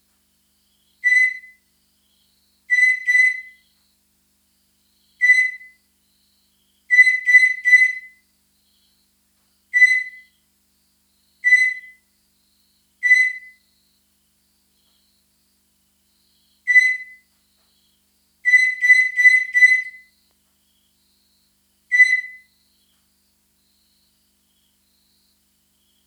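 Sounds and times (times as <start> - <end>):
katydid calls: 1.0 - 1.6, 2.7 - 3.7, 5.1 - 5.8, 6.9 - 8.2, 9.7 - 10.3, 11.4 - 12.0, 13.0 - 13.6, 16.6 - 17.2, 18.4 - 20.1, 21.9 - 22.5.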